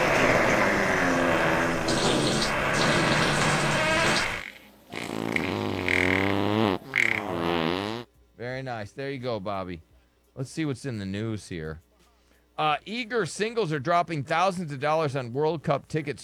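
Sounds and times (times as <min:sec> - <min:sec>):
fart sound effect: 0:00.0 - 0:08.1
speech: 0:08.6 - 0:11.9, 0:12.6 - 0:16.2.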